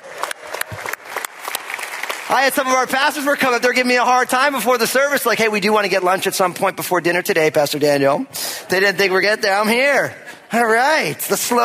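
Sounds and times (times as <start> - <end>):
crowd clapping for staff: 0.0 - 3.6
speech: 2.3 - 11.6.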